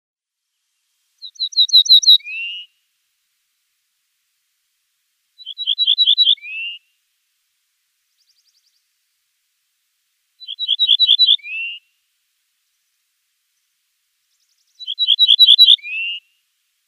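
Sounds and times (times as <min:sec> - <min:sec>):
Ortolan bunting song: 0:01.2 - 0:02.7, 0:05.4 - 0:06.8, 0:10.4 - 0:11.8, 0:14.4 - 0:16.3.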